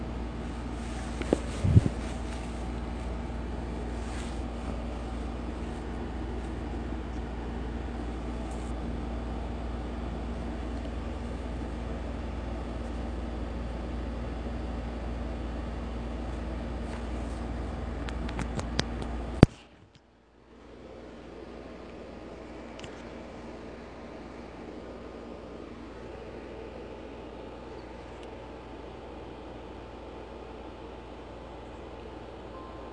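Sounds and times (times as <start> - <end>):
air conditioning unit rushing: 0.0 - 32.9.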